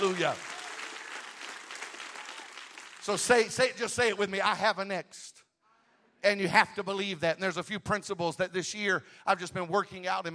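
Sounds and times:
audience clapping hands: 0.0 - 4.1
speech: 0.1 - 0.5, 3.1 - 5.4, 6.2 - 10.3.

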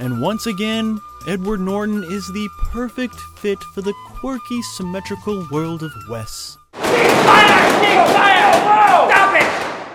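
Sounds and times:
speech: 0.0 - 8.8
excited voices talking: 6.8 - 9.5
gunshots in a film scene: 6.8 - 9.9.

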